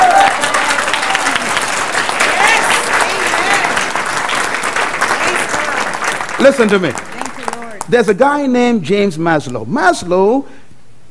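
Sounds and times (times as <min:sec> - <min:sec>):
audience clapping: 0:00.0 - 0:08.2
speech: 0:06.4 - 0:07.1, 0:07.9 - 0:11.0.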